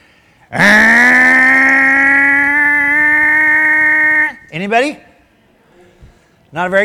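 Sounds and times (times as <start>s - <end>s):
speech: 0.5s - 0.8s, 4.6s - 5.1s, 6.5s - 6.8s
person vocally imitating a car with a buzzy steady tone: 0.5s - 4.5s.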